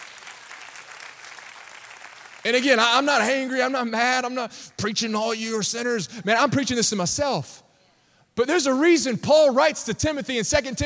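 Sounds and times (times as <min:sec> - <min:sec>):
audience clapping hands: 0:00.0 - 0:03.2
speech: 0:02.4 - 0:07.6, 0:08.4 - 0:10.8.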